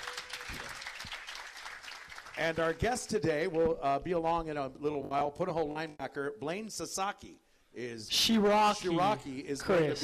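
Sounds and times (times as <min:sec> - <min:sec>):
clapping: 0:00.0 - 0:02.9
speech: 0:02.4 - 0:10.0.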